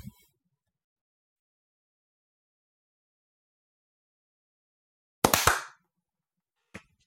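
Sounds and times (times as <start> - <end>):
sharp hand claps for sync: 5.2 - 5.8.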